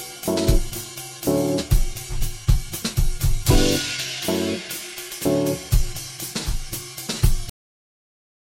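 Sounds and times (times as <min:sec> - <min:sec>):
jazz music: 0:00.0 - 0:06.2.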